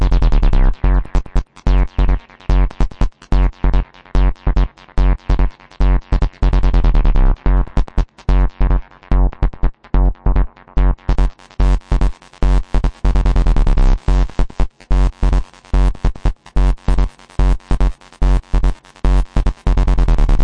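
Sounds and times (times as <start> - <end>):
wobble techno music: 0.0 - 14.3
acid bass: 0.0 - 20.4.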